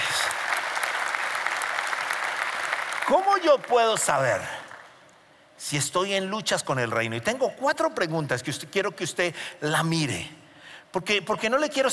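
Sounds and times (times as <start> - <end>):
audience applause: 0.0 - 4.9
speech: 3.1 - 4.6, 5.6 - 11.9.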